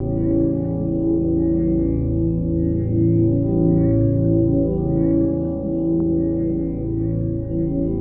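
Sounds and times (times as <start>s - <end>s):
guitar textures: 0.0s - 7.9s.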